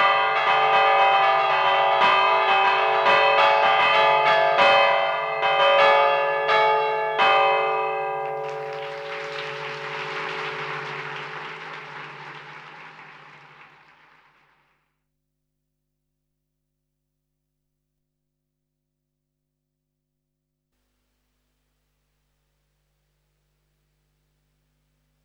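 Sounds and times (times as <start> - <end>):
bells pealing: 0.0 - 12.7.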